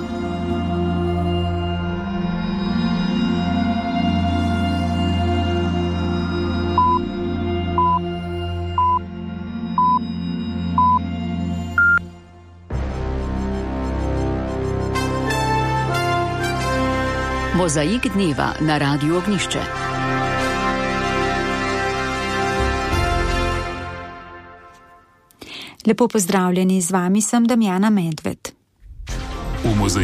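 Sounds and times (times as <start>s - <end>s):
music bed: 0.0s - 27.2s, 28.8s - 30.0s
radio hourly time signal beeps: 6.8s - 7.1s, 7.8s - 8.1s, 8.7s - 9.0s, 9.8s - 11.1s, 11.8s - 12.0s
speech: 17.6s - 20.2s, 25.9s - 28.4s, 29.8s - 30.0s.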